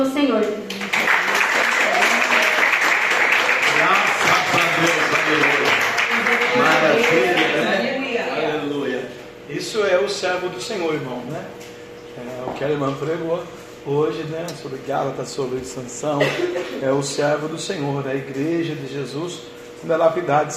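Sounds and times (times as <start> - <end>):
speech: 0.0 - 0.8, 9.7 - 20.5
audience applause: 0.7 - 8.1.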